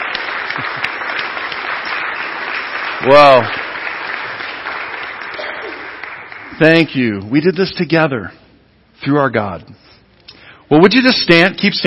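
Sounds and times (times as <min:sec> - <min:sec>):
crowd applause: 0:00.0 - 0:06.8
speech: 0:03.0 - 0:03.6, 0:06.6 - 0:08.4, 0:09.0 - 0:09.8, 0:10.7 - 0:11.8.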